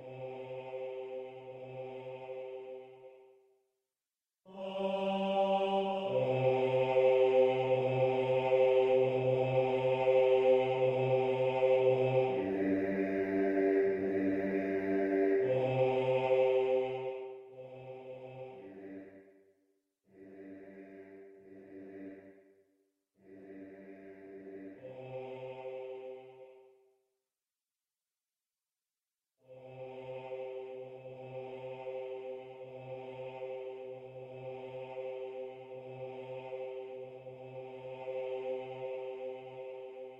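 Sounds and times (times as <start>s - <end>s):
bass section of a choir singing: 0.0s - 3.2s, 4.5s - 19.2s, 23.2s - 26.7s, 29.5s - 40.1s.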